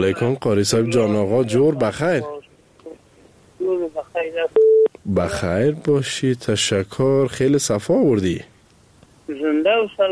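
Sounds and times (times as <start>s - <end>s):
speech: 0.0s - 2.4s, 4.2s - 8.5s, 9.3s - 10.0s
telephone line tone as a caller is connected to the radio show: 4.6s - 4.9s.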